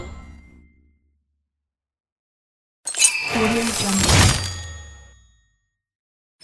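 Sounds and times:
cash win sound: 0:02.9 - 0:05.1.

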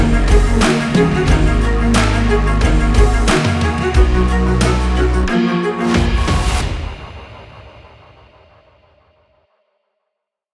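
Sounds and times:
epic sport trailer music: 0:00.0 - 0:07.1.

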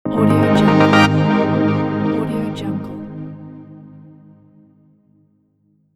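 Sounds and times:
lush dreamy opening logo jingle: 0:00.1 - 0:04.1.

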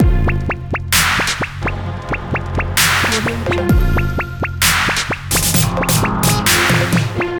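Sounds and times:
65 bpm trap beat: 0:00.0 - 0:07.3.

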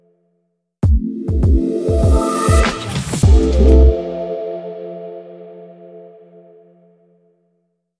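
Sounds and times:
hip hop jingle: 0:00.9 - 0:04.6.

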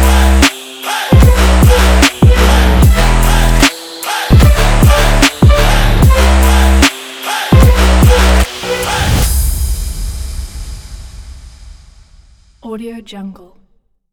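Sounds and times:
sport hip hop trap music: 0:00.0 - 0:09.4.

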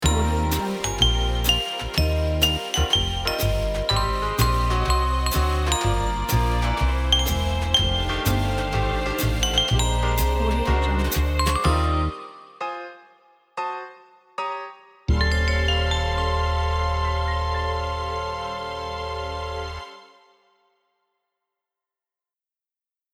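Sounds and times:
jazzy Christmas logo jingle: 0:00.0 - 0:13.0, 0:15.1 - 0:19.8.

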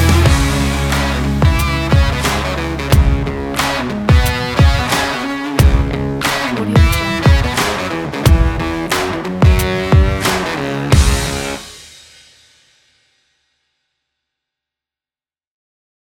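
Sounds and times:
indie rock country rock: 0:00.0 - 0:11.9.

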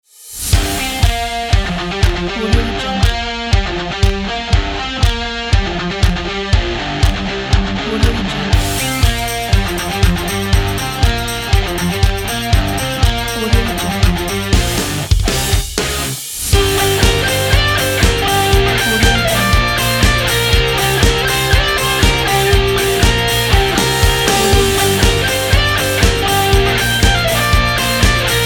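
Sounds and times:
upbeat indie rock: 0:00.6 - 0:28.4.

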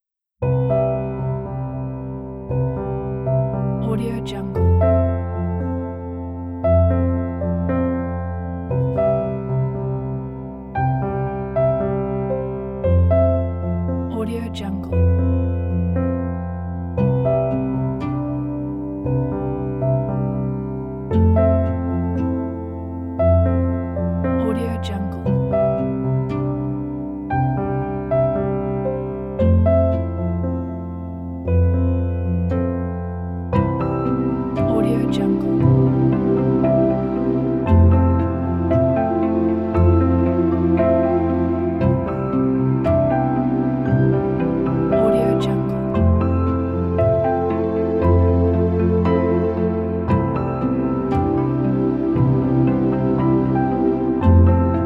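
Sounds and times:
beautiful pure soft piano: 0:00.0 - 0:54.8.

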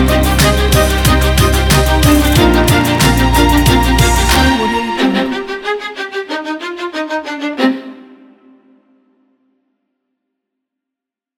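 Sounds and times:
epic inspiring hip hop beat: 0:00.0 - 0:07.9.

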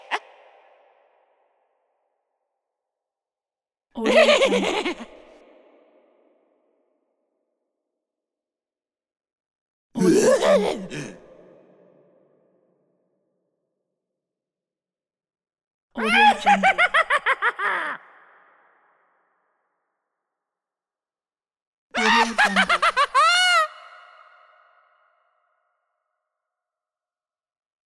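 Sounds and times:
Halloween clown laughing: 0:00.0 - 0:00.3, 0:04.0 - 0:05.3, 0:16.0 - 0:18.2, 0:22.0 - 0:24.4.

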